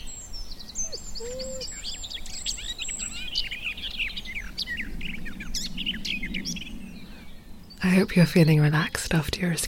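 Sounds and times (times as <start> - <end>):
garden warbler warbling: 0.8 - 1.9
speech: 8.1 - 9.6.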